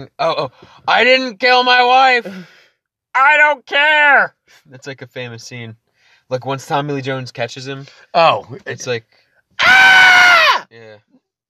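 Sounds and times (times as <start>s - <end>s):
speech: 0.0s - 2.6s, 3.2s - 11.2s
person screaming: 9.6s - 10.7s.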